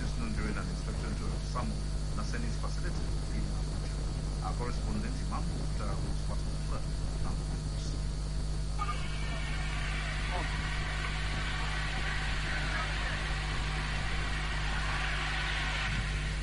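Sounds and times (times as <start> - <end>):
steady low hum: 0.0 - 16.4
speech: 1.6 - 3.7, 4.4 - 8.0
drones blasting through the air: 8.8 - 16.4.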